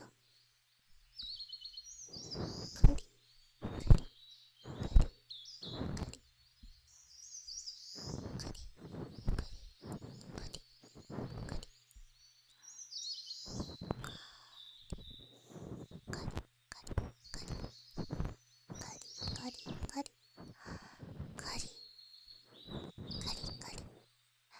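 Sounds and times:
ear cleaning ASMR: 0:02.2 - 0:03.0, 0:03.6 - 0:04.1, 0:04.7 - 0:06.2, 0:08.0 - 0:11.7, 0:14.9 - 0:21.7, 0:22.5 - 0:23.9.

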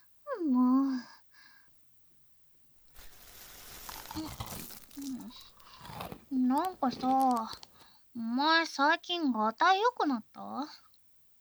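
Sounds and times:
store-bought snack packaging crinkling as it is opened: 0:02.8 - 0:07.9
speech: 0:06.4 - 0:07.6, 0:08.2 - 0:10.8.

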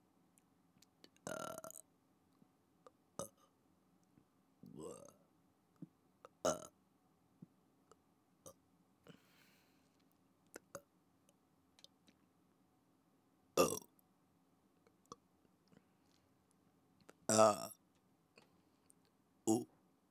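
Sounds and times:
burping: 0:01.3 - 0:01.8, 0:04.7 - 0:05.2, 0:06.5 - 0:06.7, 0:13.6 - 0:13.9, 0:17.3 - 0:17.8, 0:19.5 - 0:19.7.

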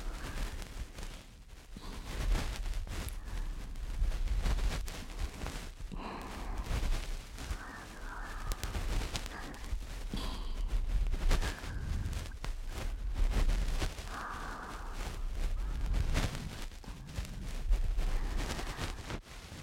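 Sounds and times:
bonten ear pick brushing in the right ear for sleep: 0:00.0 - 0:19.2.

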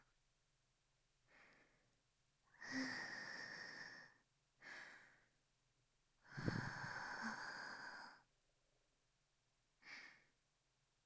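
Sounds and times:
person breathing softly: 0:01.3 - 0:01.9, 0:02.5 - 0:05.4, 0:06.2 - 0:08.2.

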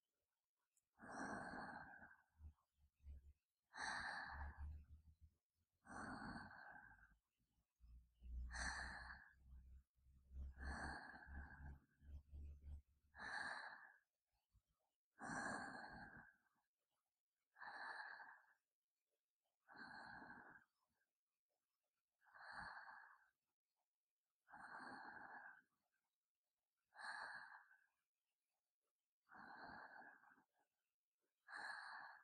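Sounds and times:
sleep breathing ASMR: 0:01.0 - 0:02.3, 0:03.7 - 0:04.8, 0:05.8 - 0:07.1, 0:08.5 - 0:09.4, 0:10.5 - 0:11.9, 0:13.2 - 0:14.0, 0:15.2 - 0:16.4, 0:17.6 - 0:18.5, 0:19.7 - 0:20.6, 0:22.2 - 0:23.3, 0:24.5 - 0:25.7, 0:27.0 - 0:27.9, 0:29.3 - 0:30.5, 0:31.5 - 0:32.2.

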